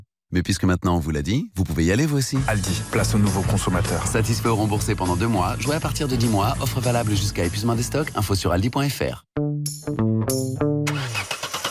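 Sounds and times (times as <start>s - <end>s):
speech: 0.3s - 9.4s
car engine struggling to start in the cold: 10.9s - 11.7s.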